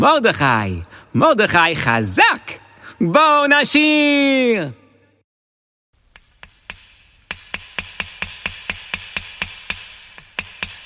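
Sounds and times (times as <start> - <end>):
speech: 0.0 - 4.8
hammering nails into wood: 6.1 - 10.8.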